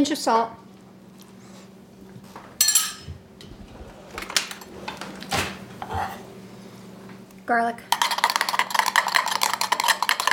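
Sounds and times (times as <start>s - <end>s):
speech: 0.0s - 0.6s, 7.5s - 7.9s
spoon stirring yogurt with salt and garlic in a bowl: 8.0s - 10.3s.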